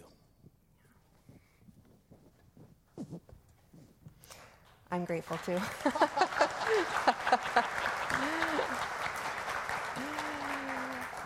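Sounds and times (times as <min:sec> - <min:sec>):
speech: 0:04.9 - 0:08.4
audience clapping: 0:05.2 - 0:11.2
laughter: 0:05.6 - 0:09.0, 0:10.0 - 0:11.2.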